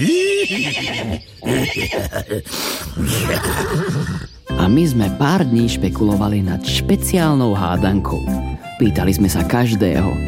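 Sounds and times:
horse neighing: 0.0s - 4.4s
speech: 0.0s - 10.2s.

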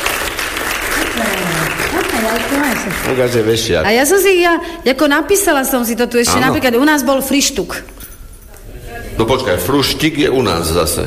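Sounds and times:
game-show studio audience clapping: 0.0s - 3.6s
speech: 2.5s - 8.0s, 9.2s - 11.0s.

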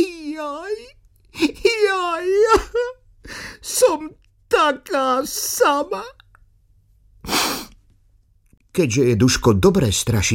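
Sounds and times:
person crying: 0.0s - 6.2s, 7.3s - 7.7s
speech: 3.8s - 6.2s, 8.8s - 10.3s.

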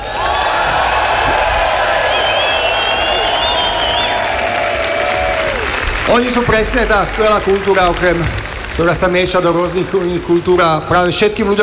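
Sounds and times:
whistles and cheers: 0.0s - 6.4s
large crowd applauding a band: 0.0s - 10.8s
speech: 6.1s - 11.6s.

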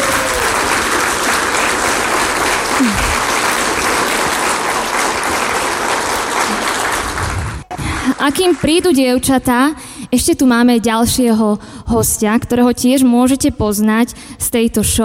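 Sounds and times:
audience applause: 0.0s - 9.0s
speech: 8.2s - 15.0s.

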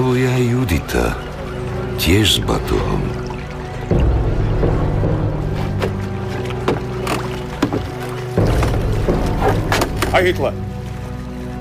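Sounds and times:
speech: 0.0s - 1.3s, 2.0s - 3.2s, 10.2s - 10.7s
steady low rumble of boats in a harbor: 0.0s - 11.5s
water sloshing in a harbor: 0.0s - 11.5s
wooden knocks and clunks: 5.6s - 10.2s.

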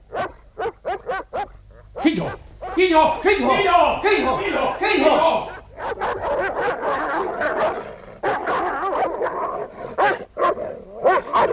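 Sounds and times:
several dogs snarling, barking and yelping in a scuffle: 0.0s - 2.8s, 5.6s - 11.5s
laughter: 2.0s - 5.7s
speech: 2.1s - 5.5s.

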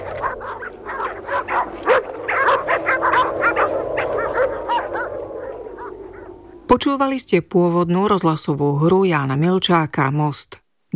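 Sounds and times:
several dogs whining and yelping: 0.0s - 6.7s
low steady background: 0.0s - 10.9s
speech: 6.9s - 10.9s.

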